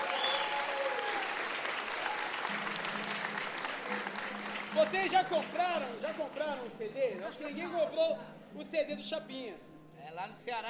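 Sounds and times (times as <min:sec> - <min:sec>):
audience applause: 0:00.0 - 0:06.7
speech: 0:04.8 - 0:10.6.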